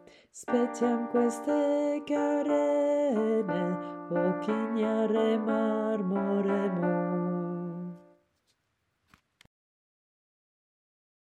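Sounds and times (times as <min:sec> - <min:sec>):
alto voice singing a chorale: 0:00.0 - 0:08.1.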